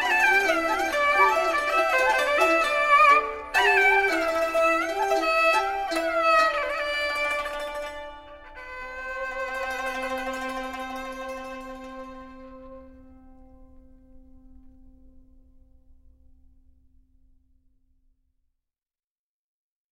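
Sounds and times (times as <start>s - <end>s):
Cantonese music ensemble playing: 0.0s - 13.5s.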